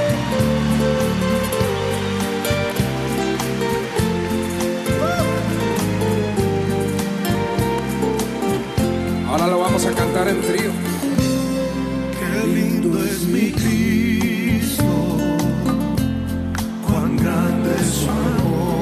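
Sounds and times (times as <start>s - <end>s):
crowd clapping loudly: 0.0s - 11.4s
sustained keyboard chords: 0.0s - 18.7s.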